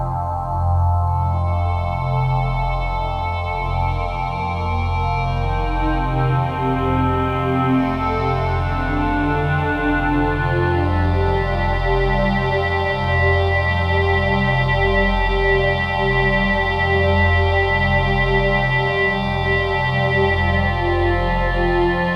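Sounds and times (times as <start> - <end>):
Kawai K1 synthesizer fx pad: 0.0 - 22.1.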